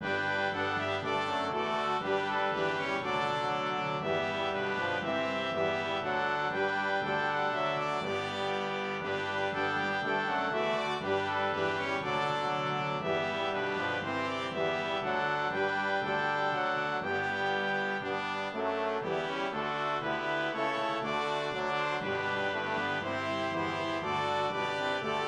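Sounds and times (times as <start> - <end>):
brass instruments: 0.0 - 25.2.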